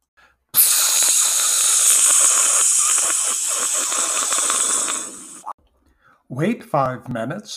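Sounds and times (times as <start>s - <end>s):
hair spray aerosol being sprayed: 0.6s - 5.5s
speech: 6.3s - 7.5s.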